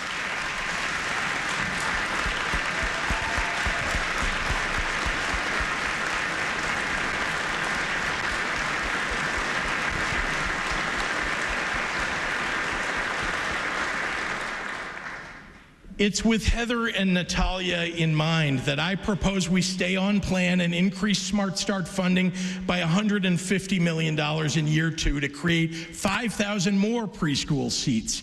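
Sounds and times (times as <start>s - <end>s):
audience applause: 0.0s - 15.6s
speech: 16.0s - 28.2s.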